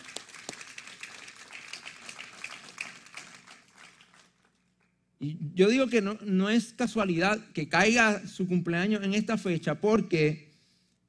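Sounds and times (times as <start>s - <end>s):
audience applauding: 0.0s - 4.5s
speech: 5.2s - 10.5s.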